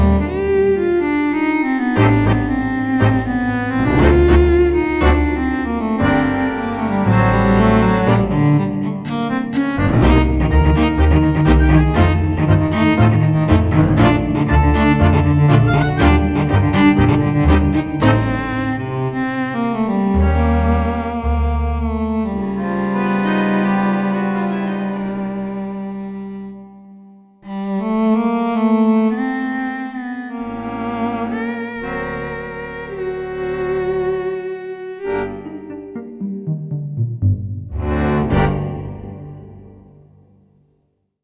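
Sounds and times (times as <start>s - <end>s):
cello articulation: 0.0s - 40.1s.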